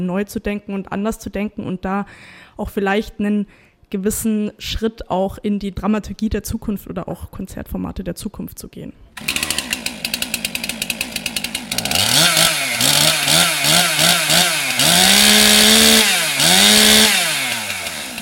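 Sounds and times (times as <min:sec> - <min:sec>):
speech: 0:00.0 - 0:09.4
chainsaw carving a statue from a wooden log at the Bürgerbräu site in Würzburg: 0:09.2 - 0:18.2.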